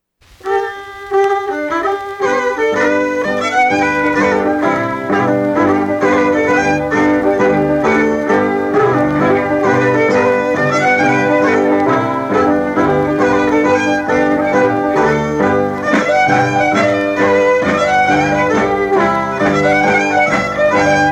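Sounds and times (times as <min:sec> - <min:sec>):
whistle: 0:00.4 - 0:21.1.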